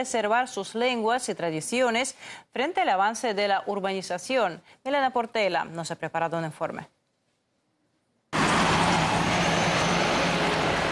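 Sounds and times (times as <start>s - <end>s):
speech: 0.0s - 7.0s
car traffic noise from nearby highways: 8.4s - 10.9s.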